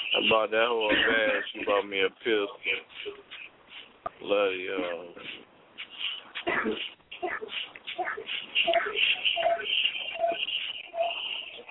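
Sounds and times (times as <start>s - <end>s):
speech: 0.2s - 3.3s, 4.2s - 5.4s, 6.5s - 6.9s
dog whimpering in high-pitched whines: 6.7s - 11.6s.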